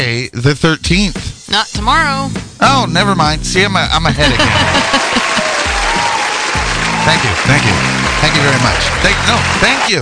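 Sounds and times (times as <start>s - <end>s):
speech: 0.0s - 6.1s, 7.0s - 10.0s
low rhythmic thumps: 0.8s - 9.6s
laughter: 4.1s - 9.8s
crowd applause: 4.2s - 10.0s.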